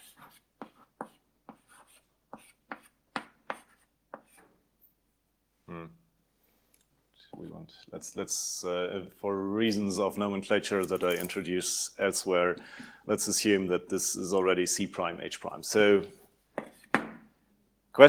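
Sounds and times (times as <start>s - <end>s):
writing on a board during a math lecture: 0.0s - 4.5s, 16.6s - 17.2s
speech: 7.6s - 16.2s.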